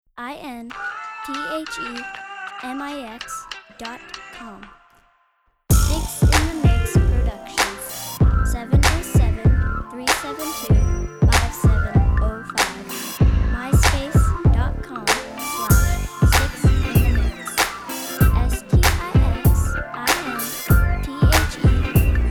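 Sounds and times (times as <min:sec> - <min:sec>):
funk music: 0:05.7 - 0:22.3.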